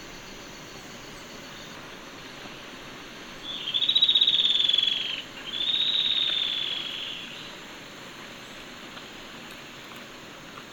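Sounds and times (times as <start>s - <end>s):
yellow-breasted antwren singing a chattering trill in Ecuador: 3.5s - 7.4s.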